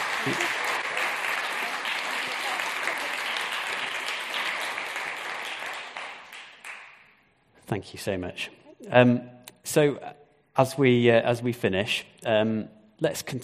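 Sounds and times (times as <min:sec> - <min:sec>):
audience applause: 0:00.0 - 0:07.0
speech: 0:00.2 - 0:00.6, 0:07.7 - 0:13.4.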